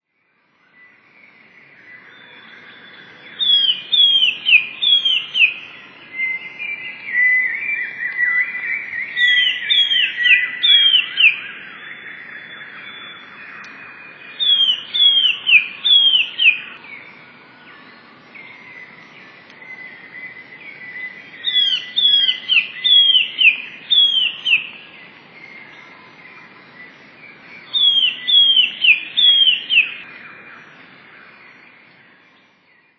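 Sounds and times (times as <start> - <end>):
Eurasian blue tit high whistled song: 2.2 - 5.6, 6.2 - 13.7, 14.4 - 16.8, 19.7 - 24.8, 27.7 - 30.0.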